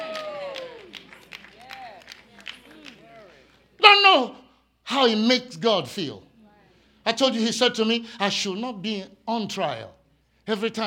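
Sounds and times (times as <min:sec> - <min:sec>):
audience clapping: 0:00.0 - 0:03.8
speech: 0:05.0 - 0:06.3, 0:07.2 - 0:10.8.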